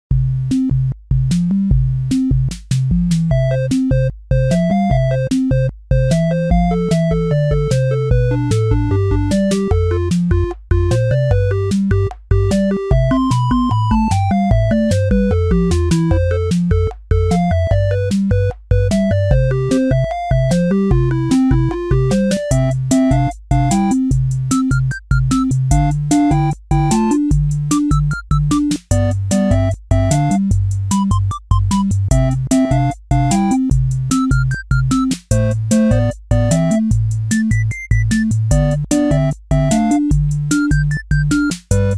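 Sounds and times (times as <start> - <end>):
music: 0.1 - 41.9.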